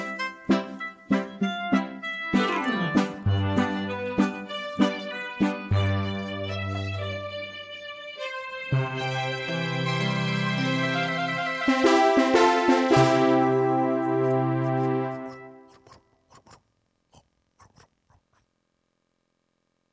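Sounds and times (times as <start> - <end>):
backing track: 0.0 - 15.6.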